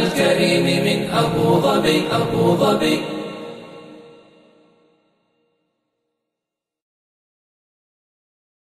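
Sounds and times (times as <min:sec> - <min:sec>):
unaccompanied nasheed vocals: 0:00.0 - 0:04.2.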